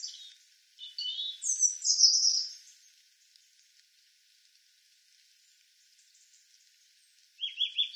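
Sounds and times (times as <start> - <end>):
European robin singing: 0.0 - 2.8, 7.1 - 7.9.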